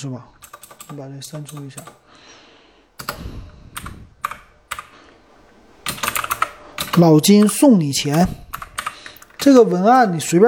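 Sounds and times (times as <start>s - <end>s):
speech: 0.0s - 2.4s, 7.0s - 8.4s, 9.4s - 10.4s
typing on a computer keyboard: 0.4s - 2.0s, 3.8s - 5.0s, 5.8s - 9.5s.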